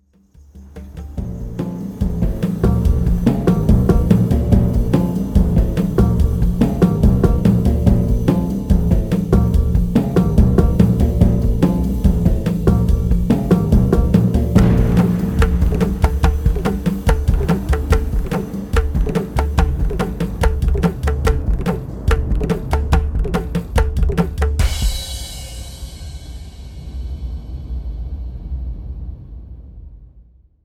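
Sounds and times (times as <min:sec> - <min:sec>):
percussion: 0:00.0 - 0:29.6.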